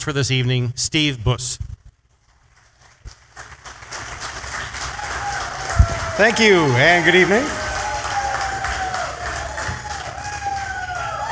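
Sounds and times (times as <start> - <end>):
speech: 0.0 - 1.8, 6.2 - 7.6
audience cheering: 4.4 - 11.2.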